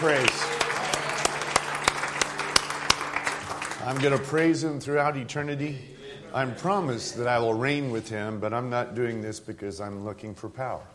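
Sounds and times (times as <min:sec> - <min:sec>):
congregation clapping in praise at a church service: 0:00.0 - 0:04.9
speech: 0:03.9 - 0:10.9.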